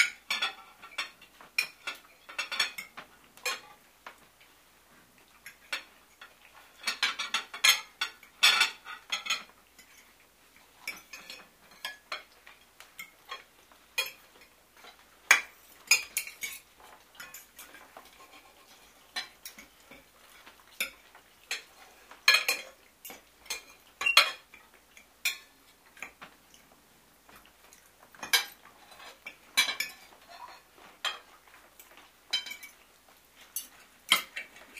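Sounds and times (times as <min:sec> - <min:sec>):
cutlery clinking at a table: 0:00.0 - 0:04.2, 0:05.4 - 0:26.6, 0:27.3 - 0:34.7.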